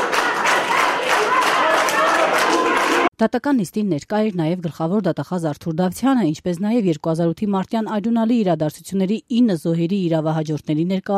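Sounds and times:
courtroom supporters clapping in a standing ovation for a former president: 0.0 - 3.1
raised voices of supporters in a courtroom: 0.0 - 3.1
speech: 3.2 - 11.1.

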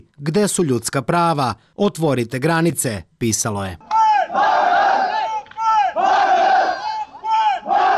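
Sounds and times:
speech: 0.2 - 4.6
crowd of protesting migrants chanting: 3.9 - 7.9.

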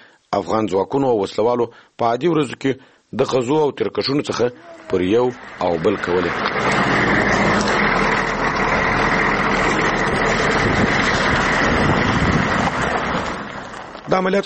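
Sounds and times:
speech: 0.4 - 7.0, 14.1 - 14.4
private car driving on a long unpaved dirt road: 4.4 - 14.4
wind buffeting: 4.8 - 14.1.

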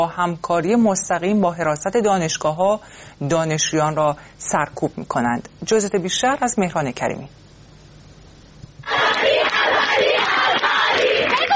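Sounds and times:
speech: 0.0 - 7.4
students shouting protest chants: 8.8 - 11.5.

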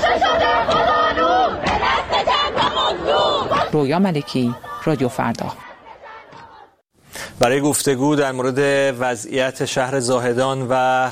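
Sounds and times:
protesting crowd chanting slogans at a university in Iran: 0.0 - 6.8
speech: 3.7 - 5.6, 7.4 - 11.1.

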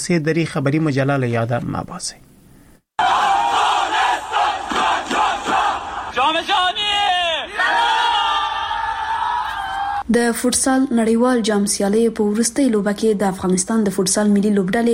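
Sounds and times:
speech: 0.0 - 2.3, 10.1 - 14.9
crowds cheering to welcome Afghanistan's national futsal team: 3.0 - 10.0
whooping: 3.0 - 10.0.

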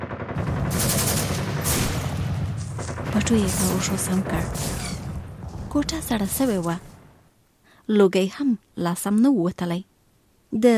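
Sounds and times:
rapid gunfire: 0.0 - 6.4
speech: 3.3 - 4.9, 5.7 - 6.9, 7.9 - 9.9, 10.5 - 10.7.

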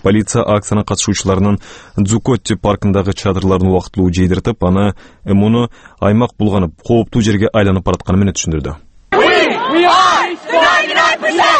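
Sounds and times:
speech: 0.0 - 8.9
Occupy Wall Street protesters chanting and yelling in Zuccotti Park, New York: 9.1 - 11.5.

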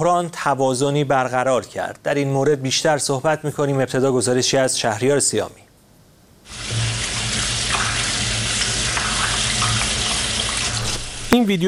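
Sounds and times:
speech: 0.0 - 5.7, 11.4 - 11.6
tap water running from a faucet during a handwashing demonstration: 6.5 - 11.6.

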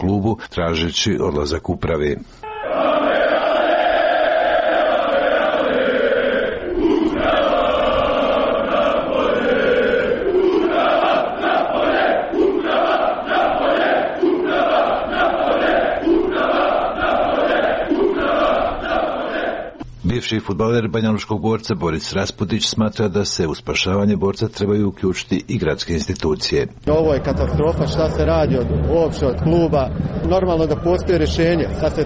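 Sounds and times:
speech: 0.0 - 2.9, 20.2 - 32.0
football supporters chanting in the streets: 2.4 - 19.8, 26.9 - 32.0.

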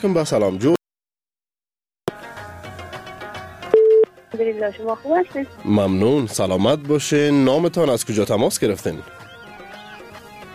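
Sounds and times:
speech: 0.0 - 0.8, 4.6 - 9.3
telephone line tone as a radio host connects a caller: 3.7 - 4.1.

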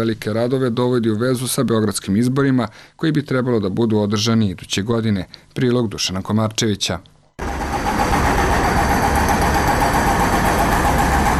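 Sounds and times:
speech: 0.0 - 7.1
heavy machines breaking up asphalt: 7.4 - 11.3.

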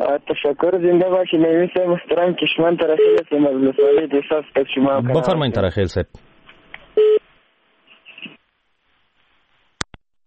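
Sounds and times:
speech: 0.0 - 6.2
telephone line tone as a radio call-in connection drops: 7.0 - 7.2.

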